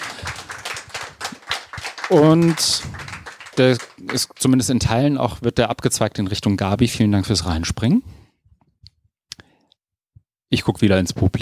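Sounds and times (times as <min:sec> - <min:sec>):
audience applause: 0:00.0 - 0:04.6
speech: 0:02.1 - 0:03.0, 0:03.6 - 0:08.2, 0:10.5 - 0:11.4.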